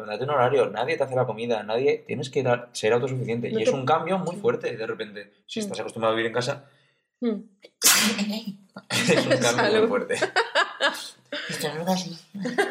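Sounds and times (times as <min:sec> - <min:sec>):
speech: 0:00.0 - 0:12.7
sneeze: 0:07.8 - 0:08.2
chuckling: 0:08.8 - 0:11.6, 0:12.4 - 0:12.7.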